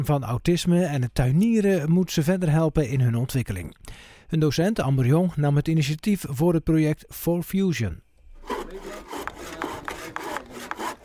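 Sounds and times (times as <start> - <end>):
speech: 0.0 - 9.3
scraping and rubbing: 8.3 - 11.0
men hammering a wooden compost bin: 8.4 - 11.0.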